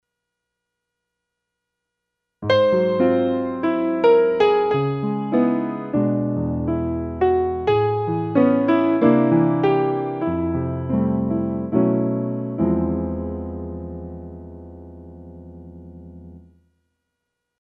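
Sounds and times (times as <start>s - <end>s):
jazz music: 2.5s - 13.6s.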